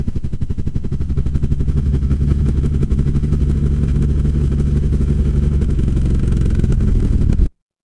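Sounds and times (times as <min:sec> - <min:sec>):
mechanical engine running: 0:00.0 - 0:07.5.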